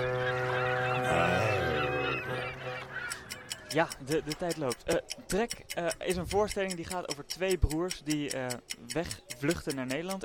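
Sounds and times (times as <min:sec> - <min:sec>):
commercial-break jingle with brassy honking horn-like tones: 0:00.0 - 0:02.9
laughter: 0:00.0 - 0:05.1
speech: 0:03.7 - 0:10.2.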